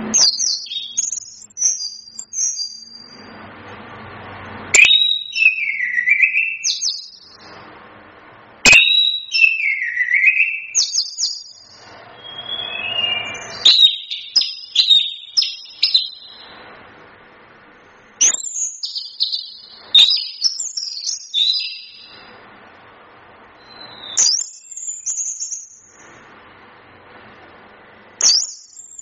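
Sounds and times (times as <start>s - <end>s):
Chestnut-capped thrush singing: 0.0s - 3.4s, 4.8s - 7.5s, 8.6s - 16.6s, 18.2s - 22.3s, 23.6s - 26.2s, 28.2s - 29.0s.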